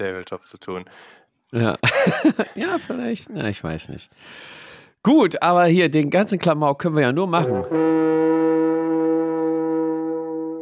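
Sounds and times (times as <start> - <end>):
speech: 0.0 - 8.6
laughter: 1.6 - 3.0, 7.4 - 7.8
horn blast: 7.4 - 10.6.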